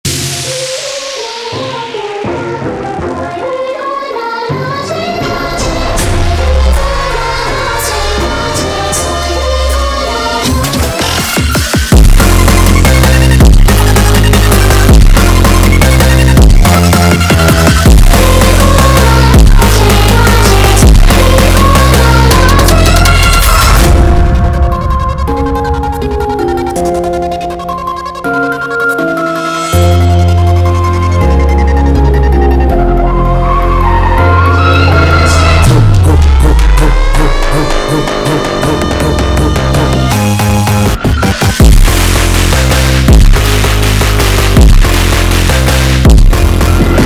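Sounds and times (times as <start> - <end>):
epic sped up phonk music: 0.0 - 47.0.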